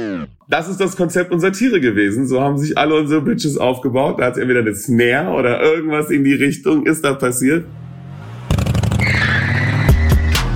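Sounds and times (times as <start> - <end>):
speech: 0.0 - 7.9
motorcycle engine revving sound effect in a track: 7.6 - 10.1.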